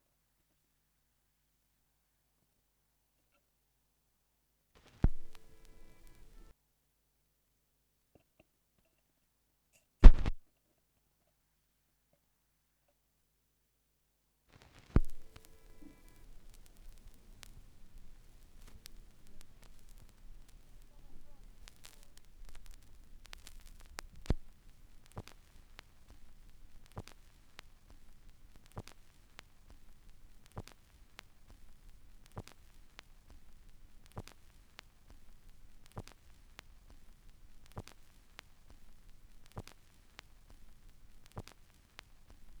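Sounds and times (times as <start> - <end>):
vinyl record noise: 4.8 - 6.5, 10.0 - 10.4, 14.5 - 42.5.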